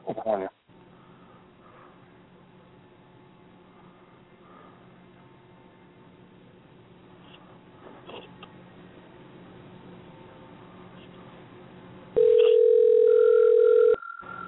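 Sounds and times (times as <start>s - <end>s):
quiet low noise: 0.0s - 14.4s
telephone ringback tone on outgoing call: 12.2s - 14.4s.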